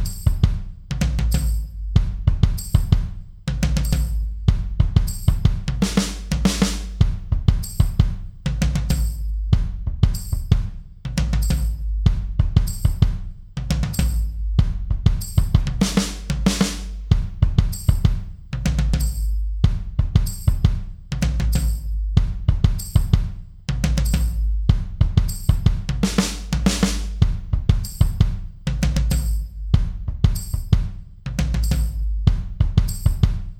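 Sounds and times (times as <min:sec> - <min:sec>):
heavy hitter drum loop: 0:00.0 - 0:33.5.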